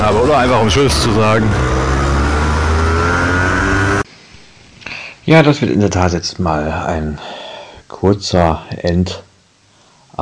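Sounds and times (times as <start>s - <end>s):
car revving past: 0.0s - 4.1s
heavy street traffic roar: 0.0s - 4.1s
speech: 0.1s - 1.8s, 5.3s - 7.4s, 8.0s - 9.3s.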